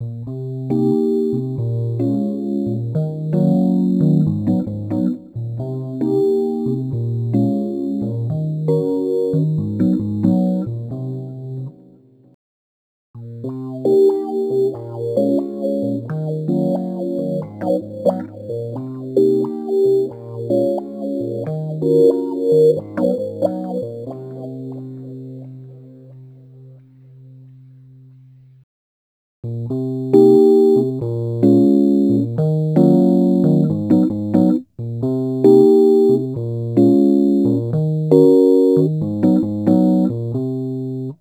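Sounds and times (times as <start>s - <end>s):
Rhodes electric piano attacks: 0.0s - 11.9s, 13.2s - 28.2s, 29.5s - 41.1s.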